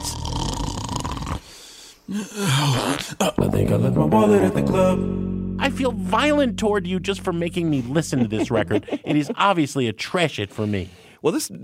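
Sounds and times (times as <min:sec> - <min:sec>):
loud rough snore: 0:00.0 - 0:01.6
speech: 0:02.1 - 0:11.6
laughter: 0:07.4 - 0:09.9.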